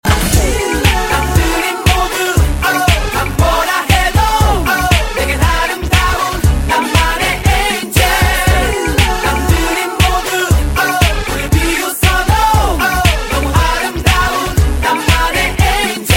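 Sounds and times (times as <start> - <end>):
angelic choir: 0.1 - 16.1.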